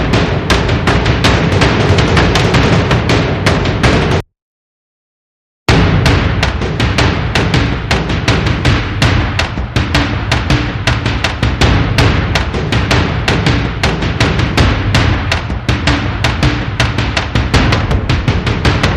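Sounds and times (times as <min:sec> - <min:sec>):
mid drums: 0:00.0 - 0:04.2, 0:05.7 - 0:18.9.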